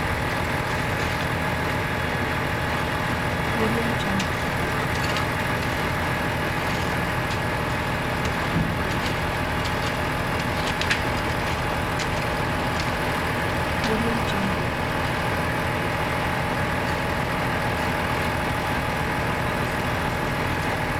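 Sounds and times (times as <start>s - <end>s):
construction site truck engine: 0.0s - 20.9s
machine shoveling and digging at construction site: 3.7s - 15.1s.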